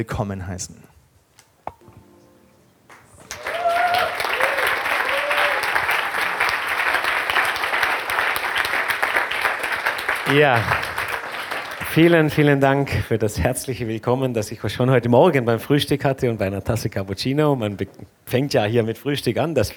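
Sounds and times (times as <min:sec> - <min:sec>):
speech: 0:00.0 - 0:01.0, 0:10.3 - 0:10.8, 0:11.9 - 0:19.7
audience applause welcoming a speaker: 0:02.9 - 0:12.2.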